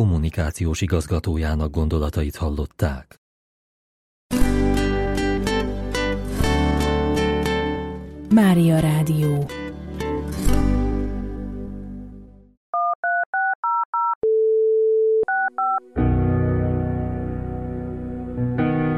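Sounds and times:
speech: 0.0s - 3.2s, 8.3s - 9.6s
music: 4.3s - 12.6s, 15.5s - 18.9s
telephone dial tone: 12.8s - 15.8s
telephone keypad dialing beeps: 12.8s - 15.8s.

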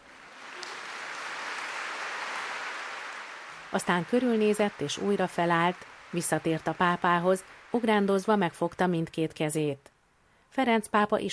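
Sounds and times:
audience applauding in a hall: 0.0s - 8.8s
speech: 3.7s - 9.9s, 10.5s - 11.3s.

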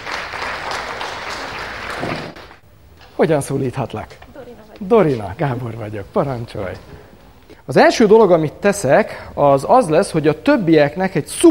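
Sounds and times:
audience applause: 0.0s - 2.6s
speech: 3.2s - 4.2s, 4.8s - 7.0s, 7.7s - 11.4s.

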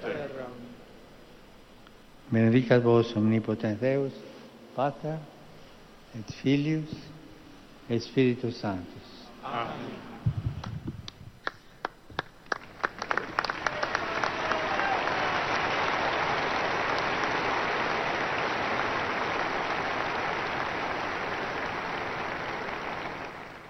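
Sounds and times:
speech: 2.3s - 5.4s, 6.1s - 7.2s, 7.9s - 10.1s
large audience applause: 11.4s - 23.6s.

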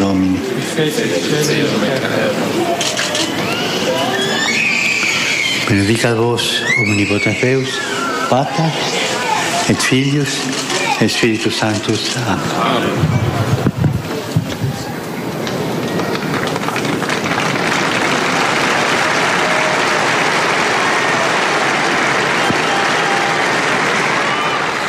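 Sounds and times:
crowd applause in St. Peter's Square: 0.0s - 24.8s
speech: 0.1s - 4.1s, 5.7s - 9.0s, 9.7s - 13.8s.

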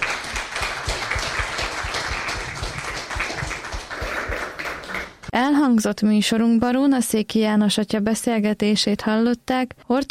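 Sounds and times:
audience applause: 0.0s - 5.3s
speech: 5.4s - 10.1s.

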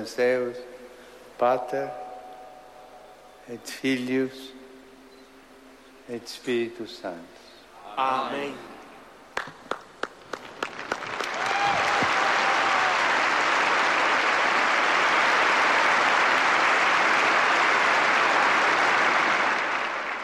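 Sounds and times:
speech: 0.0s - 0.8s, 1.4s - 2.0s, 3.5s - 4.6s, 6.1s - 7.4s, 8.0s - 8.7s
storm of applause greeting the Pope: 9.4s - 20.2s.

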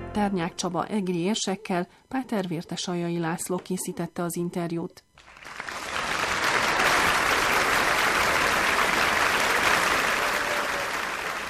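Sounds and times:
speech: 0.1s - 5.6s
applause for invited guests: 5.1s - 11.4s.

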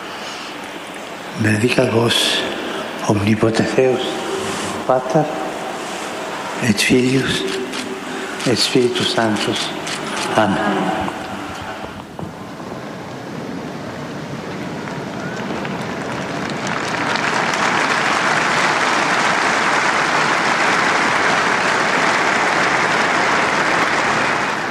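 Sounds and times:
applause from pilgrims in St. Peter's Square: 0.0s - 24.6s
speech: 1.4s - 4.3s, 4.9s - 5.4s, 6.6s - 7.6s, 8.4s - 11.2s.

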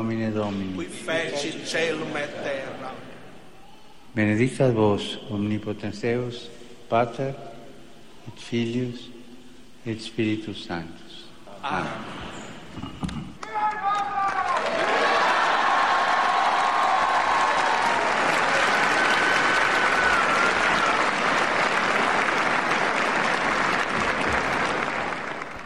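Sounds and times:
speech: 0.0s - 3.1s, 4.2s - 7.5s, 8.2s - 9.2s, 9.8s - 11.0s, 11.6s - 12.2s
large crowd applause and cheering: 13.4s - 25.6s.

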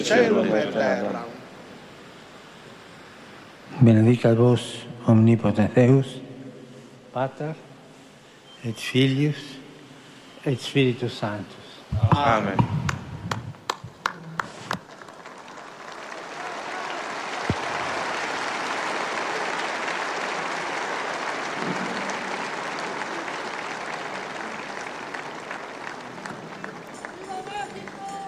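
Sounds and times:
speech: 0.0s - 1.4s, 3.7s - 6.2s, 7.2s - 7.7s, 8.6s - 9.6s, 10.4s - 12.8s
large crowd applause after papal blessing: 12.9s - 28.2s.

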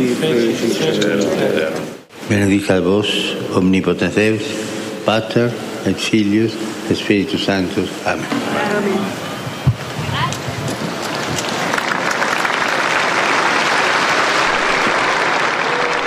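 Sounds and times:
speech: 0.2s - 9.2s
large outdoor crowd applause in a large square: 10.3s - 16.0s.

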